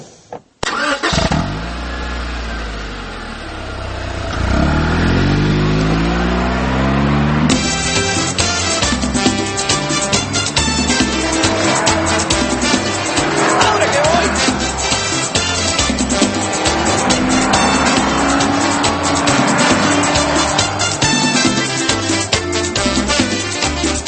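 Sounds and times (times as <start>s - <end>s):
car engine starting and revving: 0.6s - 23.9s.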